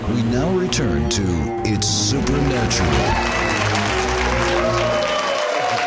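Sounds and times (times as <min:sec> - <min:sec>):
speech: 0:00.2 - 0:03.3
studio audience applauding: 0:02.2 - 0:05.8.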